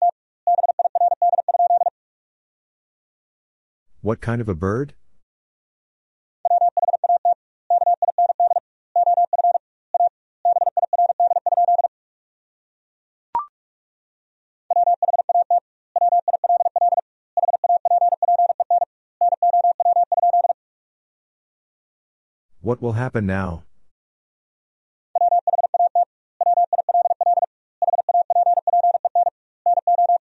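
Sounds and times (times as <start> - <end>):
rapid Morse code practice tones: 0.5 - 1.9, 6.5 - 11.9, 14.7 - 20.6, 25.2 - 30.2
speech: 4.0 - 5.0, 22.7 - 23.7.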